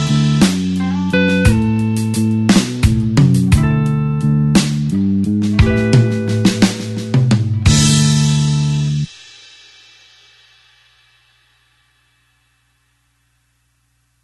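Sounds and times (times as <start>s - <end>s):
slow blues backing slide guitar fill: 0.0s - 9.1s.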